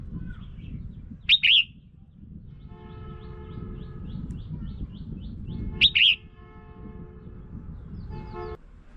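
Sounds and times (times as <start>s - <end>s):
red-whiskered bulbul calls: 1.3s - 1.8s, 5.2s - 6.2s.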